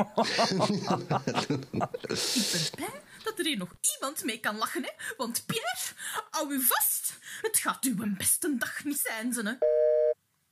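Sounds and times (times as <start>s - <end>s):
laughter: 0.0s - 2.8s
speech: 0.0s - 9.9s
phone busy tone beep: 9.6s - 10.2s.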